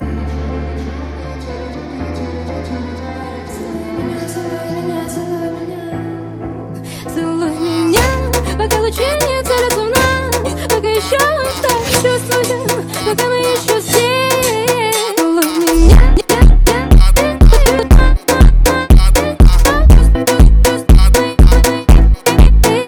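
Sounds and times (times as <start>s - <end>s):
slowed phonk music: 7.6s - 22.8s.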